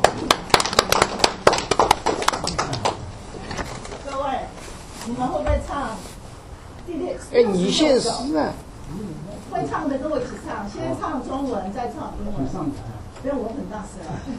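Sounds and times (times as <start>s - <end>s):
scattered applause from a small crowd: 0.0s - 3.0s
speech: 5.1s - 6.1s, 6.9s - 14.3s.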